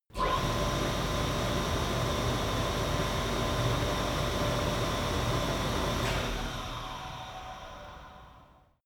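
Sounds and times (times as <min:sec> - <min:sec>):
flue gas installation starting, running and stopping: 0:00.2 - 0:08.7.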